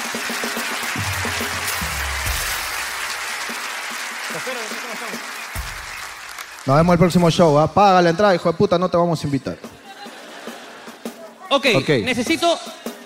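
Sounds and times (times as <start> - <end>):
crowd applauding: 0.0 - 8.2
voices and cheers: 0.0 - 8.5, 9.7 - 11.5
speech: 4.4 - 5.4, 6.6 - 9.8, 11.5 - 12.8
laughter: 9.2 - 11.5.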